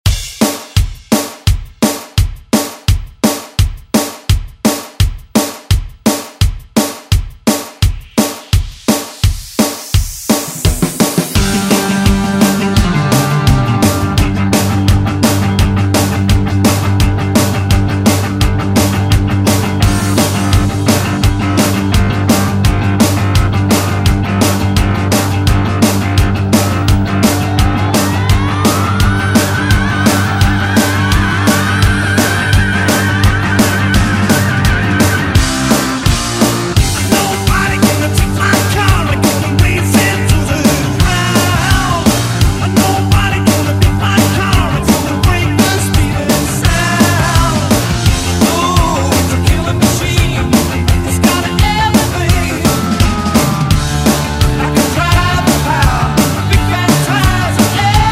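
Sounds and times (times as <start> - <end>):
70s drum beat: 0.0 - 58.0.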